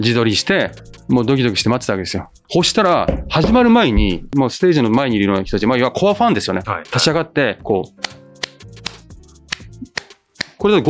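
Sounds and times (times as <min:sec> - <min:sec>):
speech: 0:00.0 - 0:08.2, 0:10.6 - 0:10.8
rhythmic hand claps: 0:08.0 - 0:10.6.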